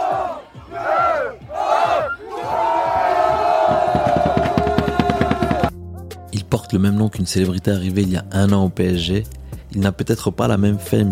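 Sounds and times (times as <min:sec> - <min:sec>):
football supporters chanting: 0:00.0 - 0:05.7
rhythmic drum beats: 0:00.0 - 0:05.8
speech: 0:06.7 - 0:11.1.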